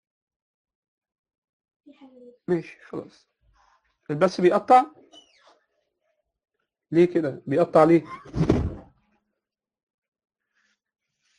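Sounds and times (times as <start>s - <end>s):
speech: 1.9s - 3.3s, 4.1s - 5.2s, 6.9s - 8.5s
drawer shut with a bang: 8.3s - 8.9s.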